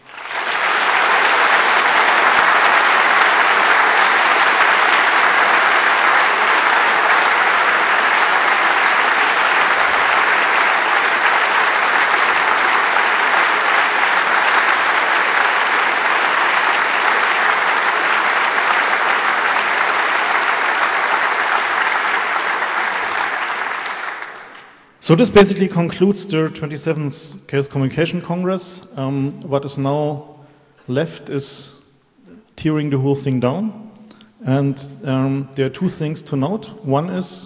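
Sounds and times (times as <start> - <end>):
large audience applause: 0.0 - 25.0
speech: 25.1 - 31.8, 32.6 - 33.8, 34.4 - 37.4.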